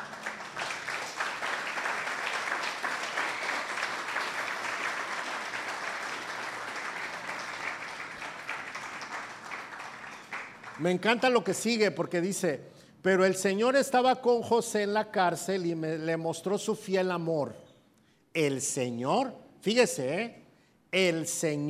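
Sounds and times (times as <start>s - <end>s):
audience applause: 0.0s - 11.0s
speech: 10.8s - 17.6s, 18.4s - 21.6s.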